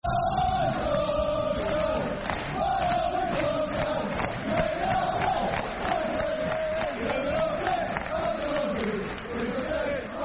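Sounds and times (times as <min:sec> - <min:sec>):
football fans chanting soccer songs: 0:00.0 - 0:10.2.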